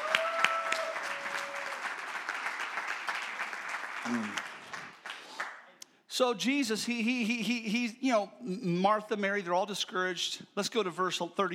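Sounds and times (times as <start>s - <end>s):
audience applause: 0.0s - 5.6s
speech: 4.1s - 4.5s, 6.2s - 11.5s.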